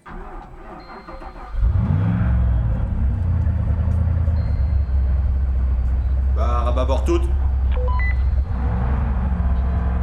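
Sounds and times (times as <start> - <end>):
ship engines starting at full power: 0.0 - 10.0
speech: 6.9 - 7.4.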